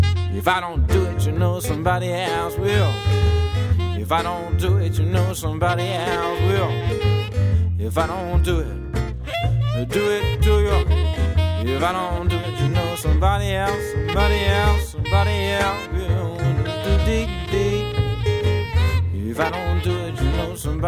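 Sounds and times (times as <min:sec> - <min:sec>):
saxophone: 0:00.0 - 0:00.8, 0:01.4 - 0:20.8
acoustic guitar: 0:00.0 - 0:20.8
upright bass: 0:00.0 - 0:20.8
person singing New Orleans blues: 0:00.1 - 0:20.8.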